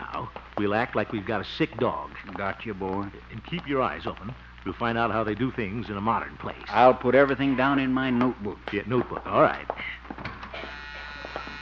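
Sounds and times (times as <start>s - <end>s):
speech: 0.2s - 10.0s
door buzzer: 10.4s - 11.6s.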